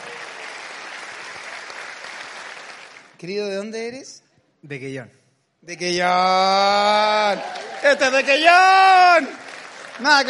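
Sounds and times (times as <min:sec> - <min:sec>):
audience applause: 0:00.0 - 0:03.1, 0:07.0 - 0:10.2
speech: 0:03.2 - 0:09.4, 0:10.0 - 0:10.2.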